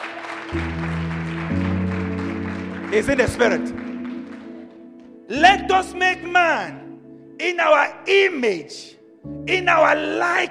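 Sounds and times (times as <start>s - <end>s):
audience clapping: 0.0s - 5.1s
speech: 0.5s - 1.0s, 2.9s - 3.8s, 5.3s - 6.8s, 7.4s - 10.4s.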